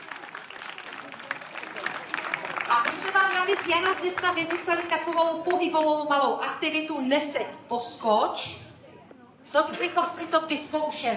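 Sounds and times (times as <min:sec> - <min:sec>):
audience applause for sound engineers: 0:00.0 - 0:05.2
speech: 0:02.8 - 0:08.6, 0:09.5 - 0:11.1.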